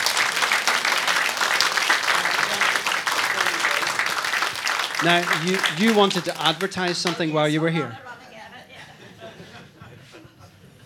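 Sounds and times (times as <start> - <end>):
audience applause: 0.0 - 7.9
laughter: 0.0 - 10.8
speech: 5.0 - 8.0.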